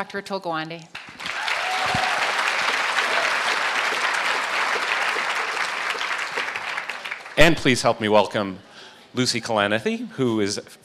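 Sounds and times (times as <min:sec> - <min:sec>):
speech: 0:00.0 - 0:01.0, 0:07.5 - 0:10.8
audience applauding to welcome a surgeon and writer: 0:01.0 - 0:08.0.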